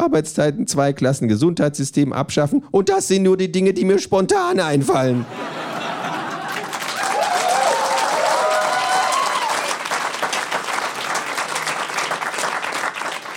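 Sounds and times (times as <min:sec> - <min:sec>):
speech: 0:00.1 - 0:05.7
laughter: 0:05.1 - 0:07.4
studio audience clapping: 0:06.0 - 0:13.3
cheers and whistles: 0:07.0 - 0:09.8.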